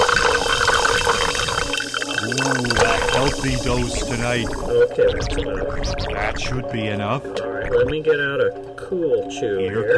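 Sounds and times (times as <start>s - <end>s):
club soda pouring into a glass: 0.0s - 4.8s
speech: 3.3s - 9.9s.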